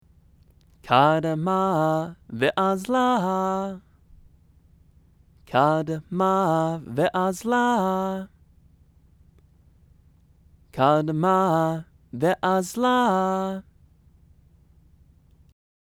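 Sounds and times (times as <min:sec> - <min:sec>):
scripture chanting: 0:00.7 - 0:04.4, 0:05.4 - 0:08.5, 0:10.7 - 0:13.8.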